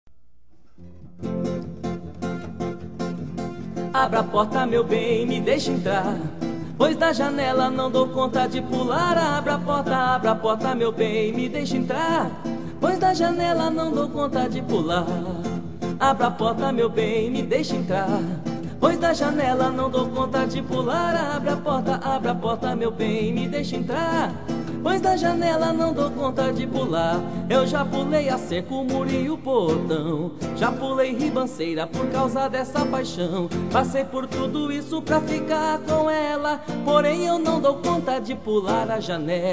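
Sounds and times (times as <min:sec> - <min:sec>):
acoustic guitar: 0:00.1 - 0:39.5
person singing: 0:03.8 - 0:39.5.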